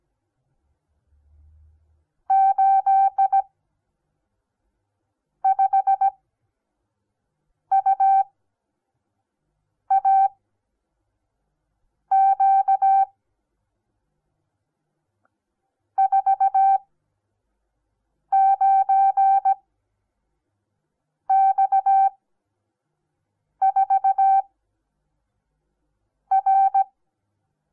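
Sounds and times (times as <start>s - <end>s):
morse code beeps: 2.3s - 3.4s, 5.5s - 6.2s, 7.7s - 8.3s, 9.9s - 10.3s, 12.1s - 13.1s, 16.0s - 16.8s, 18.4s - 19.6s, 21.3s - 22.1s, 23.6s - 24.4s, 26.3s - 26.9s.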